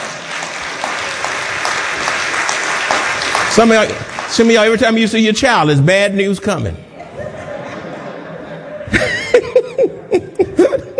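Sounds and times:
crowd clapping: 0.0s - 5.5s
speech: 3.5s - 6.8s
laughter: 6.9s - 10.9s.

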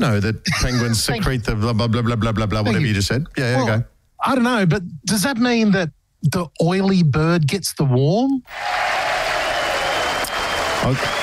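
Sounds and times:
speech: 0.0s - 9.0s, 10.8s - 11.2s
group clapping: 8.5s - 11.2s.

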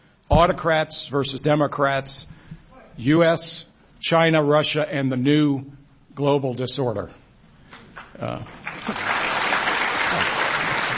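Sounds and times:
speech: 0.3s - 2.4s, 3.0s - 7.2s, 8.2s - 9.2s
audience applause: 8.5s - 10.9s.

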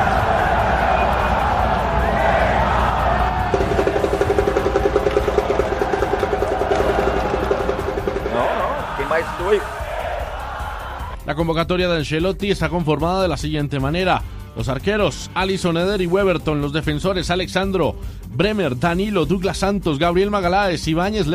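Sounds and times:
applause: 0.0s - 9.6s
speech: 9.5s - 9.8s, 11.3s - 21.3s.

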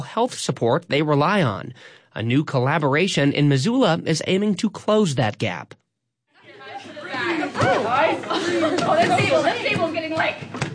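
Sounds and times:
speech: 0.1s - 5.8s, 7.5s - 10.6s
crowd of camp counselors chattering: 6.3s - 10.7s
laughter: 7.3s - 9.6s.

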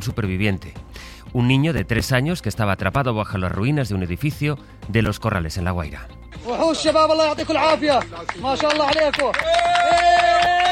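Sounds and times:
speech: 0.0s - 10.6s
people clapping: 6.8s - 10.7s
crowd cheering at a rescue: 8.4s - 10.7s.

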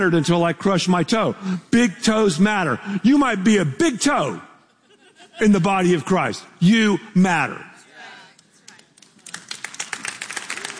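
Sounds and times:
speech: 0.0s - 4.5s, 5.4s - 7.7s
laughter: 4.6s - 6.2s
speaker clapping hands: 8.3s - 10.7s.

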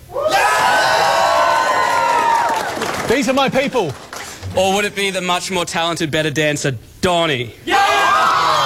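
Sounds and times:
live audience cheering for a performer: 0.1s - 4.2s, 7.7s - 8.6s
speech: 3.1s - 7.8s.

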